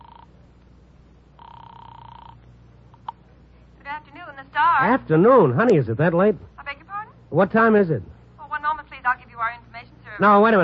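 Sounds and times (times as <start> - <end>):
telephone ringing: 0.0 - 0.4, 1.4 - 3.2
speech: 4.0 - 6.5, 7.3 - 8.1, 10.2 - 10.6.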